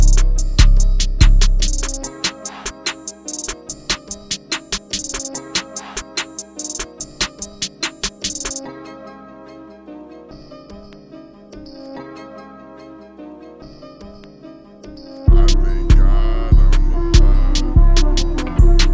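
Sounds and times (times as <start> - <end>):
instrumental beat loops: 0.0 - 8.6, 15.3 - 18.9.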